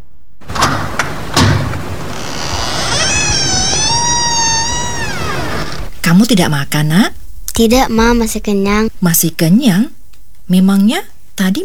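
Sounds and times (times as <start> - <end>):
door latch and handle clicks: 0.4 - 5.9
speech: 6.1 - 11.6.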